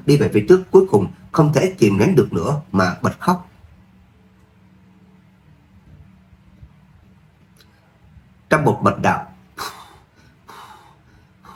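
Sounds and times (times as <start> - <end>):
speech: 0.0 - 3.5, 8.5 - 9.3
rapid panting breaths: 9.6 - 11.5.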